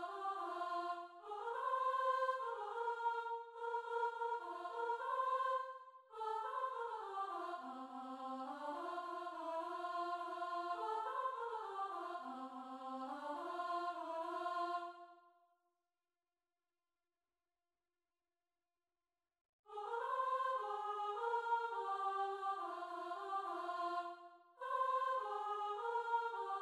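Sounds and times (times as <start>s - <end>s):
soprano singing: 0.0s - 5.6s, 6.2s - 14.9s, 19.7s - 26.6s.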